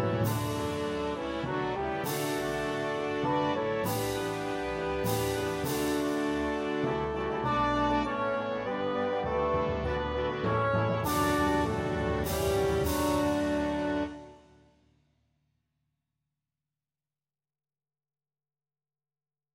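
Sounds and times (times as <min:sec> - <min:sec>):
mini bassoon track with melody: 0:00.0 - 0:14.7.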